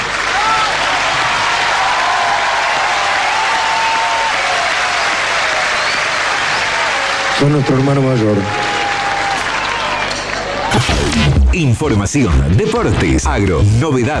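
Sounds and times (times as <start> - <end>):
audience applause: 0.0 - 10.7
speech: 7.4 - 8.6, 11.6 - 14.1.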